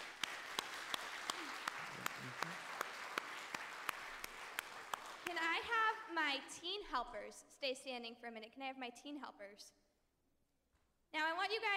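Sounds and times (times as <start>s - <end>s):
crowd applause: 0.0s - 5.3s
faint cheer or voice: 1.2s - 2.8s
speech: 5.3s - 9.8s, 11.1s - 11.7s.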